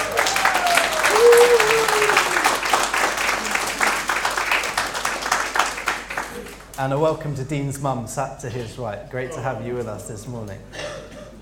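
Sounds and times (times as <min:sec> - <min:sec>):
audience applause: 0:00.0 - 0:06.8
speech: 0:06.8 - 0:10.8.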